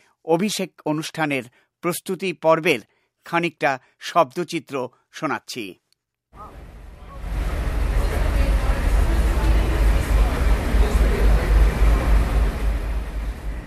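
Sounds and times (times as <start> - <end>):
speech: 0.2 - 5.8, 6.4 - 6.6
traffic rumbling outside in Washington: 6.4 - 13.6.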